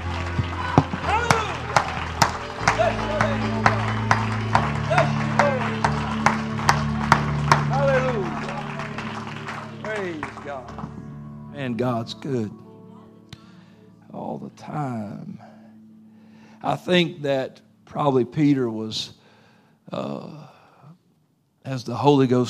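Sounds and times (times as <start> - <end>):
audience hand clapping: 0.0 - 11.2
speech: 11.7 - 12.6, 14.6 - 15.5, 16.6 - 19.2, 19.9 - 20.5, 21.6 - 22.4.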